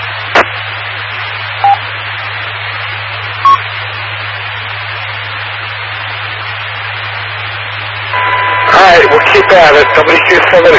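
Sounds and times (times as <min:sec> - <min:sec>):
radio transmission noise with high waning pitch: 0:00.0 - 0:10.7
beep: 0:03.4 - 0:03.6, 0:08.2 - 0:10.2
speech: 0:09.1 - 0:10.7.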